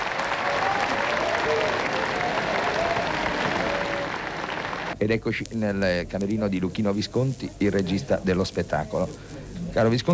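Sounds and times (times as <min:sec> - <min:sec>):
theatre audience applause: 0:00.0 - 0:05.0
speech: 0:05.0 - 0:10.1.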